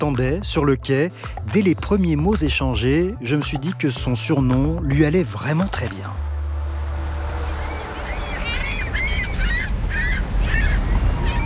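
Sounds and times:
speech: 0.0s - 6.3s
gulls calling by the harbour: 7.0s - 11.4s.

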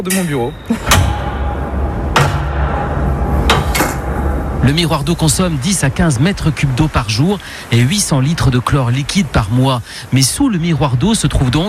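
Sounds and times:
speech: 0.0s - 1.2s, 4.6s - 11.6s
heavy floor hatch metallic clank: 0.0s - 6.9s
steady low rumble: 0.4s - 9.4s.

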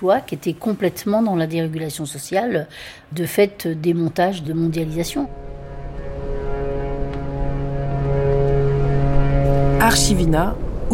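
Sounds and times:
speech: 0.0s - 5.4s, 9.8s - 10.9s
several ship horns blaring together: 4.3s - 10.9s.

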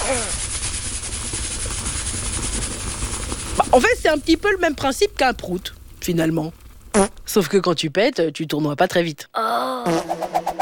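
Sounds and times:
voice imitating pressure cooker steam escaping: 0.0s - 0.8s
speech: 3.8s - 10.4s.

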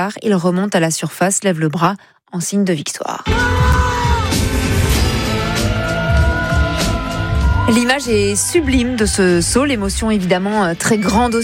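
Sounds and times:
speech: 0.0s - 4.8s, 7.7s - 11.4s
crowd applause: 3.3s - 11.4s.

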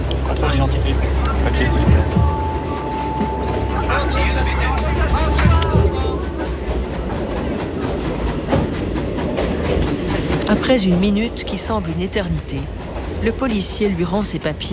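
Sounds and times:
train running on rails: 0.0s - 14.7s
voices murmuring: 0.0s - 14.7s
thin high tone: 0.3s - 7.6s
speech: 0.4s - 2.4s, 9.7s - 14.7s.

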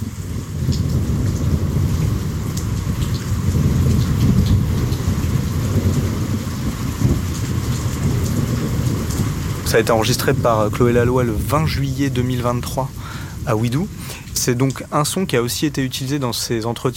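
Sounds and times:
deep rumble of thunder: 0.0s - 16.2s
steady dense rain: 0.0s - 16.9s
speech: 9.7s - 16.9s.

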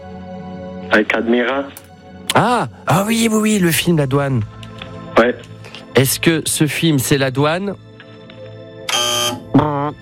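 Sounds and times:
speech: 0.9s - 1.8s, 2.4s - 4.6s, 5.2s - 7.9s
radio quiz wrong-answer buzzer: 8.9s - 9.9s.

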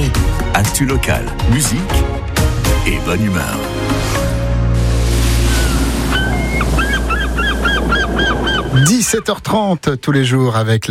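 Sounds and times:
speech: 0.6s - 2.2s, 2.8s - 4.1s, 8.8s - 10.8s
sea waves at Penguen beach, Saint-Calguildo, Côtes d'Armor: 3.7s - 9.4s
goose-like honking calls: 5.6s - 9.1s.

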